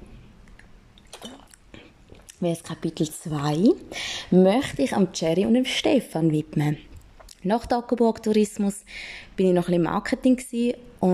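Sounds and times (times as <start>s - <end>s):
person sipping a drink: 0.4s - 2.4s
speech: 2.4s - 11.1s.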